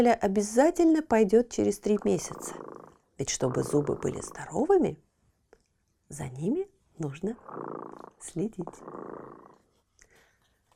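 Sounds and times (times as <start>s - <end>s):
speech: 0.0s - 5.0s, 6.1s - 9.5s
cat purring: 1.5s - 4.9s, 7.0s - 9.8s.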